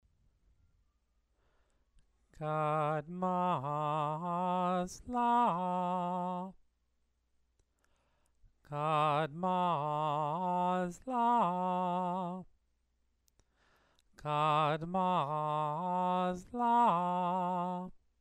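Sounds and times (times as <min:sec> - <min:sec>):
person chanting scripture: 0:02.4 - 0:06.6, 0:08.7 - 0:12.5, 0:14.2 - 0:18.0.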